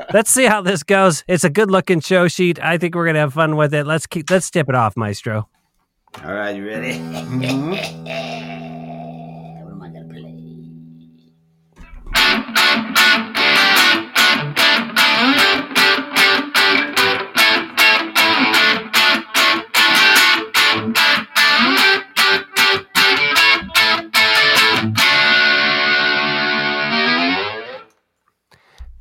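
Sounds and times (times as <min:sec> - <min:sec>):
speech: 0:00.1 - 0:08.3
laughter: 0:06.7 - 0:08.9
ukulele with two broken strings playing: 0:11.9 - 0:26.4.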